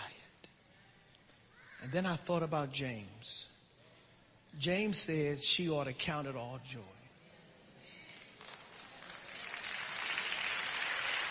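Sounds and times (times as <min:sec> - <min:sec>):
speech: 0:01.8 - 0:03.5, 0:04.5 - 0:07.0
audience clapping: 0:08.1 - 0:11.2.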